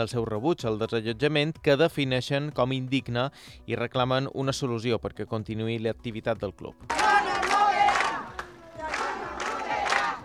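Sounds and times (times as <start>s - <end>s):
speech: 0.0s - 7.1s
crowd of protesting neighbours chanting in unison: 6.9s - 10.2s.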